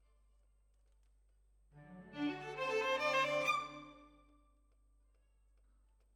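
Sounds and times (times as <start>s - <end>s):
violins: 1.8s - 4.2s.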